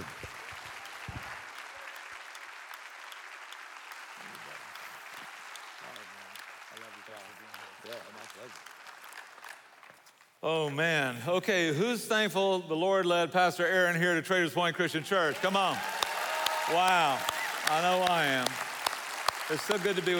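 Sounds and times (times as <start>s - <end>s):
church congregation applauding to welcome its pastor at Traders Point Christian Church: 0.0s - 10.9s, 15.1s - 20.1s
speech: 7.9s - 8.7s, 10.4s - 16.0s, 16.7s - 18.6s, 19.5s - 20.1s.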